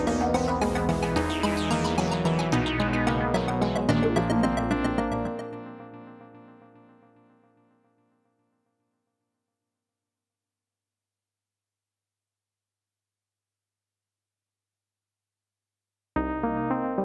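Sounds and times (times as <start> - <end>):
synths: 0.0 - 6.6.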